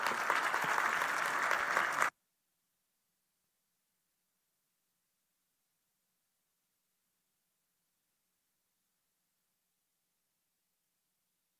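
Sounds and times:
audience applause in a church: 0.0 - 2.1.

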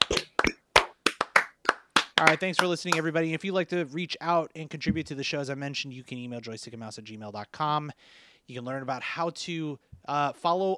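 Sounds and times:
hand clapping: 0.0 - 3.2
speech: 2.2 - 10.7.

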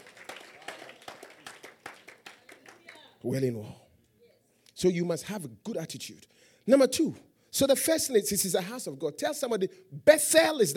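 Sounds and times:
audience clapping in a steady rhythmic beat: 0.0 - 3.3
speech: 3.2 - 3.8, 4.8 - 10.7.

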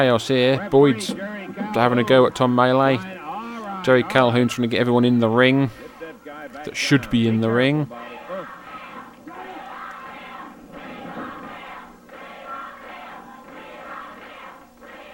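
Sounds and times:
speech: 0.0 - 3.1, 3.8 - 5.8, 6.6 - 8.1
wrestling crowd chanting: 0.0 - 15.1.

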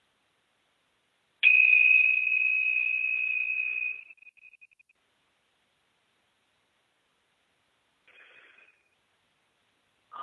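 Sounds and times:
bells ringing: 1.4 - 4.6.

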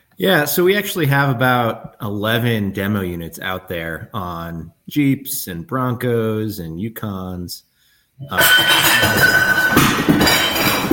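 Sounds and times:
speech: 0.2 - 9.9
hard objects knocked over by cats clattering and clinking: 8.2 - 10.9.

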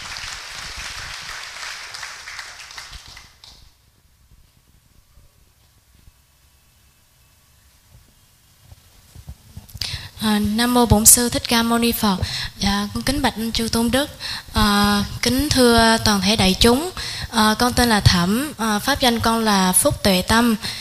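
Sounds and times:
audience applause: 0.0 - 3.6
speech: 10.2 - 20.7.

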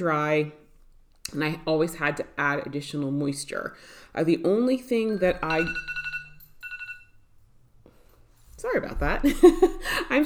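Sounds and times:
speech: 0.0 - 0.6, 1.3 - 6.0, 8.6 - 10.2
alarm clock going off: 5.0 - 7.2.

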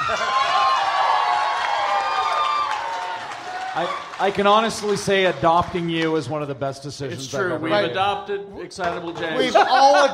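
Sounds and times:
laughter: 0.0 - 0.6, 9.2 - 10.1
scattered shouts and whoops: 0.0 - 4.2
crowd clapping and cheering: 0.0 - 6.5
speech: 3.8 - 10.1.

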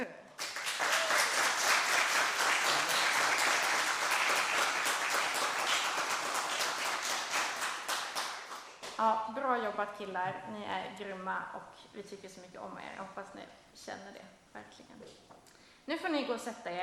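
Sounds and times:
applause in church: 0.4 - 9.0
speech: 9.6 - 16.8.

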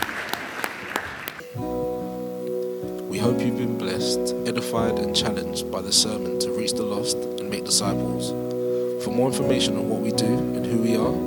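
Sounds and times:
church congregation clapping in praise after a sermon: 0.0 - 1.6
murmuring congregation: 0.0 - 11.2
sustained tonal music: 1.4 - 11.2
speech: 3.2 - 11.2.

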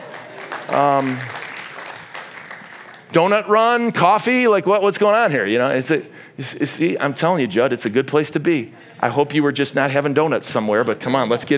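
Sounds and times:
audience applause: 0.0 - 3.1
speech: 0.7 - 1.4, 3.1 - 11.5.

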